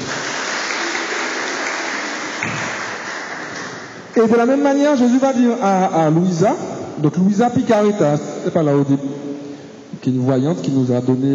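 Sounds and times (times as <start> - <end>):
audience applause: 0.0 - 4.2
speech: 4.2 - 9.3, 10.0 - 11.3.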